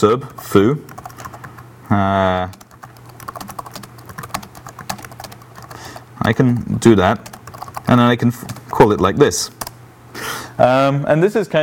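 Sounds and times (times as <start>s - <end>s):
speech: 0.0s - 1.0s, 1.9s - 2.6s, 6.2s - 7.3s, 7.9s - 9.6s, 10.2s - 11.6s
typing code on a computer keyboard: 0.3s - 1.6s, 2.4s - 9.8s.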